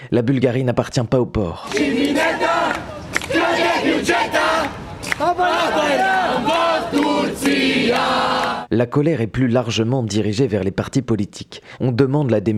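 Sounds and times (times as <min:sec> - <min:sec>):
speech: 0:00.0 - 0:12.5
protest crowd shouting and chanting at a street demonstration: 0:01.6 - 0:08.7.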